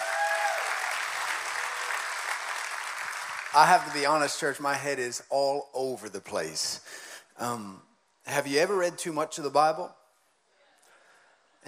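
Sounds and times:
audience clapping: 0.0 - 4.4
speech: 3.5 - 10.0.

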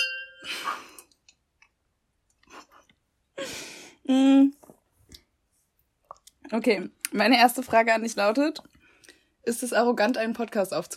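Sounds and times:
glasses clinking in a toast: 0.0 - 0.5
speech: 4.1 - 4.6, 6.5 - 8.7, 9.4 - 10.9.

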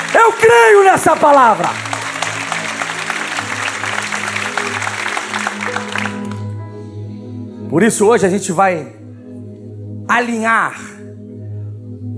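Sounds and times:
audience applauding: 0.0 - 6.6
speech: 0.1 - 1.9, 7.7 - 9.0, 10.1 - 10.9.

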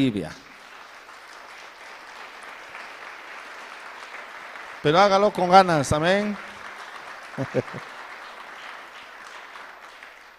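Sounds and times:
speech: 0.0 - 0.5, 4.8 - 6.5, 7.4 - 7.9
applause: 0.0 - 10.3
laughter: 7.3 - 8.1.

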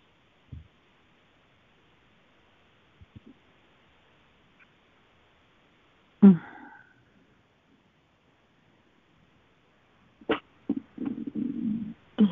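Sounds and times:
person burping while stretching: 6.2 - 6.8, 10.7 - 12.3.

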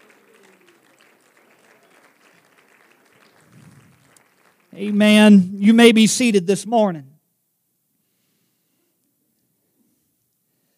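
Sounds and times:
crowd clapping in a large room: 0.0 - 5.4
speech: 4.8 - 7.1.

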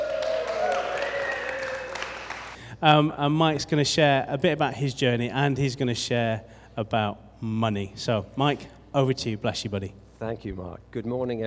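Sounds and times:
crowd applauding: 0.0 - 2.6
sustained whoop or whistle: 0.0 - 2.6
speech: 2.8 - 11.4.

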